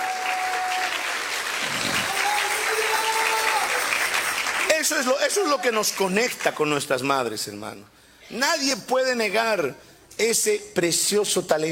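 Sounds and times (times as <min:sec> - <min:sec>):
audience applause: 0:00.0 - 0:06.6
speech: 0:04.9 - 0:11.6.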